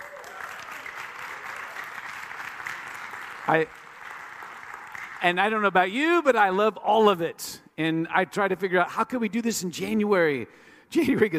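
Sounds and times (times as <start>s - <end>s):
audience applause: 0.0s - 5.7s
speech: 3.5s - 3.8s, 5.2s - 11.3s.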